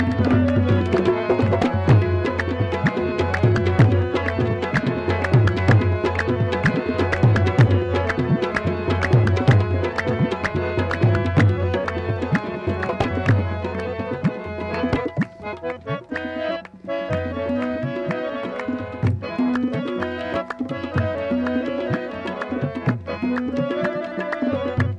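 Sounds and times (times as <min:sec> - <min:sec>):
instrumental music: 0:00.0 - 0:24.9.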